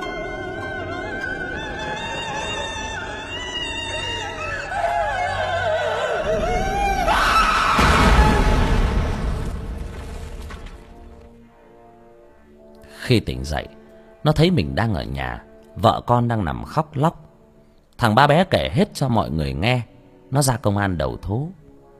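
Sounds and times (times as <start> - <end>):
ghostly wailing: 0.0 - 9.6
eerie laughter: 0.1 - 8.9
person screaming: 3.2 - 8.8
speech: 13.1 - 17.2, 18.0 - 21.6.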